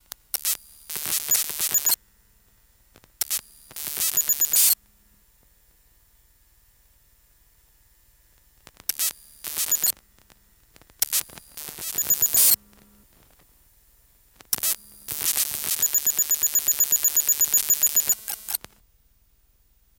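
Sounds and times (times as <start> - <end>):
static: 0.0 - 2.0, 2.9 - 4.9, 8.4 - 18.8
telemetry sound effects: 0.9 - 2.0, 3.3 - 4.8, 9.0 - 10.0, 11.0 - 12.9, 14.6 - 18.6.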